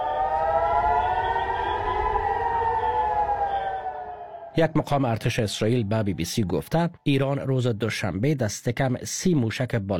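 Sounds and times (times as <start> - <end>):
air-raid warning siren: 0.0 - 6.8
speech: 4.6 - 9.9.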